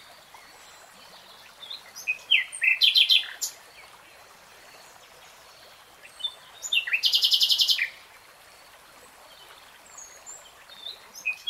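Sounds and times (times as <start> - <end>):
nightingale song: 0.0 - 4.0, 5.6 - 8.0, 9.3 - 11.4.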